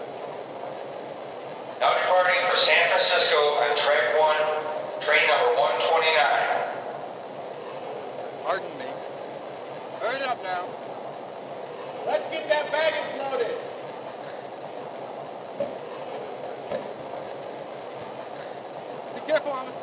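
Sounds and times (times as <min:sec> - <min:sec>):
F59PHI diesel locomotive: 0:00.0 - 0:19.8.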